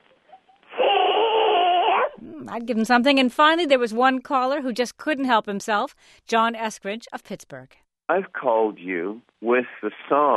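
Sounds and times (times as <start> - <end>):
person imitating baby barred owl begging call: 0.7 - 2.5
speech: 2.5 - 10.3.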